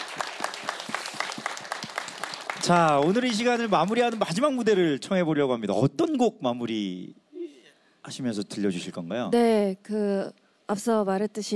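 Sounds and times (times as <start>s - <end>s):
audience applause and cheering: 0.0s - 4.8s
speech: 2.7s - 7.2s, 8.0s - 11.5s.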